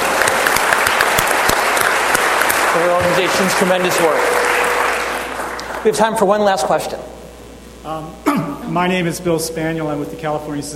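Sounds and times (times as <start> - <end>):
round of applause: 0.0 - 6.1
speech: 2.8 - 4.5, 5.8 - 7.2, 7.8 - 10.7.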